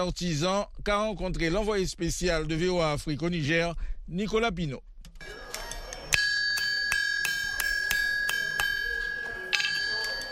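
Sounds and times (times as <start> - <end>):
speech: 0.0 - 5.6
blacksmith hammer striking hot iron: 6.1 - 10.3.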